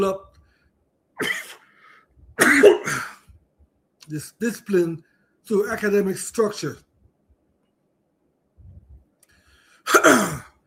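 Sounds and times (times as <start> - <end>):
speech: 0.0 - 0.3, 1.2 - 1.4, 4.1 - 6.8
person coughing after something went down the wrong pipe: 1.2 - 1.7, 2.4 - 3.3, 9.9 - 10.6.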